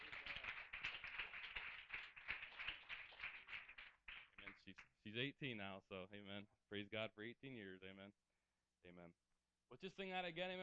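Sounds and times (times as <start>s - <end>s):
audience applause: 0.0s - 4.7s
speech: 4.6s - 8.2s, 8.8s - 10.6s.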